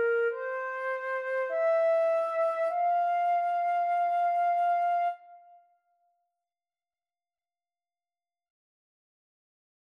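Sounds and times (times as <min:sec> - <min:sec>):
flute duet: 0:00.0 - 0:05.6.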